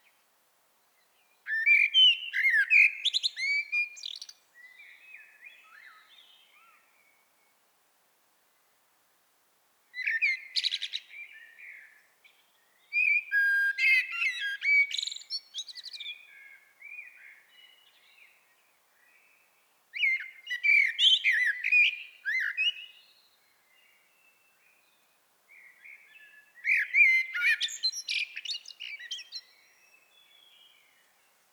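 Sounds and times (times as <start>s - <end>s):
common blackbird song: 0.0s - 7.6s, 9.9s - 31.5s.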